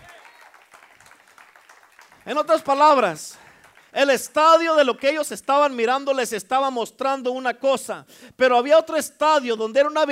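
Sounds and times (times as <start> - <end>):
audience applause: 0.0 - 4.0
speech: 2.2 - 10.1.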